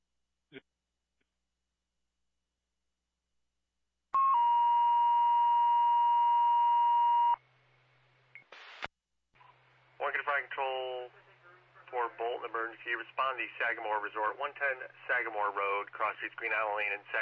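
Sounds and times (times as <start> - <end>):
dispatch radio cancellation tones: 4.2 - 7.4, 8.4 - 17.2
speech: 12.7 - 17.2.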